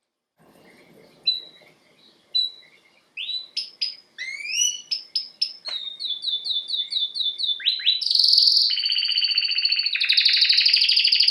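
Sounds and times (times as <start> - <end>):
faint low background noise: 0.0 - 11.2
domestic canary whistling and chirping: 1.0 - 11.2.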